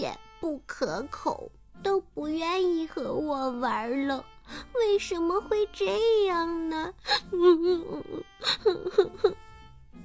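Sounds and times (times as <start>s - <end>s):
speech: 0.1s - 9.5s
person acting a child-like character crying: 7.0s - 9.4s.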